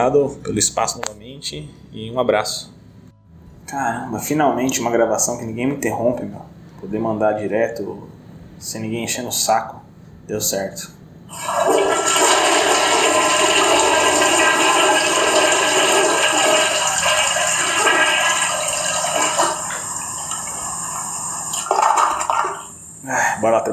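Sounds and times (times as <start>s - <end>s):
speech: 0.0s - 2.8s, 3.7s - 12.2s, 23.4s - 23.7s
toilet water gurgling and refilling: 11.3s - 22.8s
toilet flushing: 11.3s - 23.0s.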